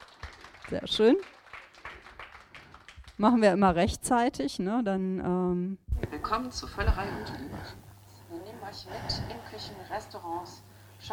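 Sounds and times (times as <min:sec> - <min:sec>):
few hands clapping: 0:00.0 - 0:03.2
speech: 0:00.7 - 0:01.4, 0:03.2 - 0:07.8, 0:08.7 - 0:11.1.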